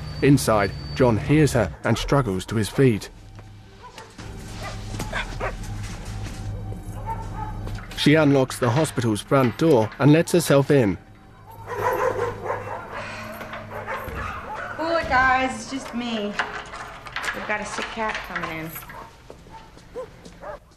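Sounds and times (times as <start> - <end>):
steady low hum: 0.0 - 17.2
speech: 0.2 - 3.2, 8.0 - 11.0, 15.4 - 16.6, 17.4 - 18.9
dog barking from inside a cage: 2.6 - 3.0, 3.8 - 5.7, 6.6 - 7.7, 11.4 - 14.8, 18.9 - 20.7.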